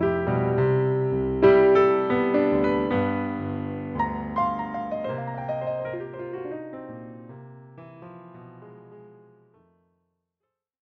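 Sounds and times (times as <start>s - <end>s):
drunken blues music: 0.0s - 7.4s.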